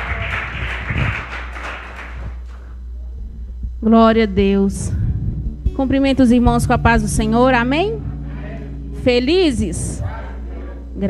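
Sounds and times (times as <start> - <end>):
audience clapping: 0.0 - 2.8
constant low hum: 0.0 - 11.0
speech: 3.8 - 5.0, 5.8 - 8.1, 9.0 - 10.2.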